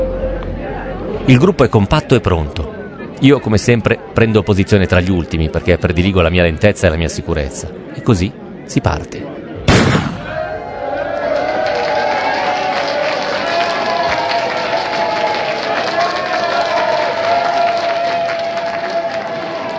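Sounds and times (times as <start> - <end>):
crowd noise with voices: 0.0 - 19.7
speech: 1.3 - 9.4
starting pistol fired at the start of the North Cape race: 9.7 - 10.4.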